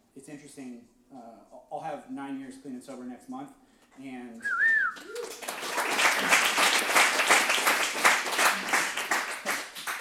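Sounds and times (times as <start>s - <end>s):
speech: 0.2s - 5.4s
large audience at a recovery talk clapping: 4.8s - 9.9s.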